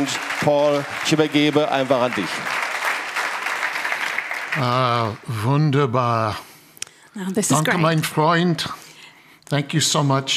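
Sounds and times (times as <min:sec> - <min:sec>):
speech: 0:00.0 - 0:02.6, 0:04.6 - 0:06.5, 0:07.2 - 0:08.8, 0:09.5 - 0:10.3
audience applause: 0:00.0 - 0:05.8.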